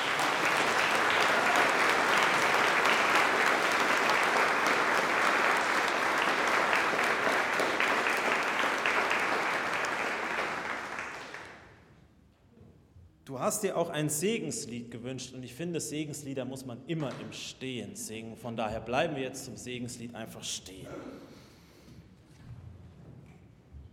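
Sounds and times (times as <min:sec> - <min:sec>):
audience applauding: 0:00.0 - 0:11.8
speech: 0:13.5 - 0:21.1.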